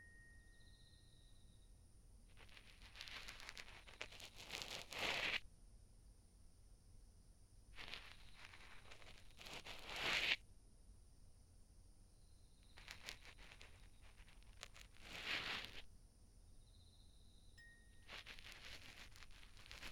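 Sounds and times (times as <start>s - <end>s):
cotton swab asmr: 2.3s - 5.5s, 7.8s - 10.4s, 12.7s - 15.9s, 18.0s - 19.9s.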